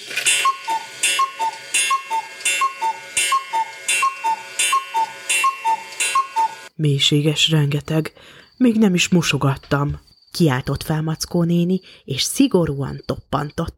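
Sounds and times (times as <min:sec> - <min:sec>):
clock ticking: 0:00.3 - 0:06.7
speech: 0:06.8 - 0:13.7.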